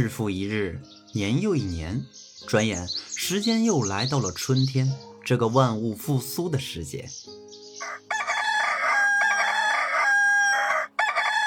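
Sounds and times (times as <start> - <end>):
speech: 0.0 - 7.5
rooster crowing: 7.8 - 11.4.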